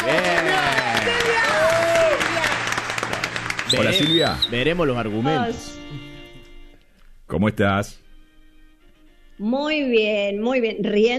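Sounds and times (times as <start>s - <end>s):
audience applause: 0.0s - 5.0s
speech: 3.7s - 6.1s, 7.3s - 8.0s, 9.4s - 11.1s.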